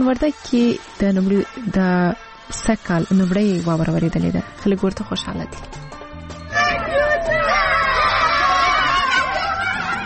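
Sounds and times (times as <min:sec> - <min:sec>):
speech: 0:00.0 - 0:05.9
children shouting and laughing while playing in snow in Maidan Wardak province: 0:06.5 - 0:10.0.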